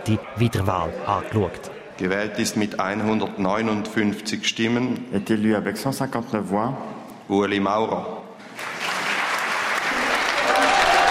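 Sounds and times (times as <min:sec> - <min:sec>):
speech: 0:00.1 - 0:08.2
applause and cheering, standing ovation: 0:08.6 - 0:11.0.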